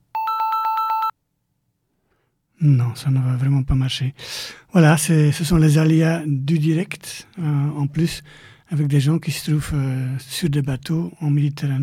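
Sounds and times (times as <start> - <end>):
telephone ringing on outgoing call: 0.1 - 1.1
speech: 2.6 - 11.8.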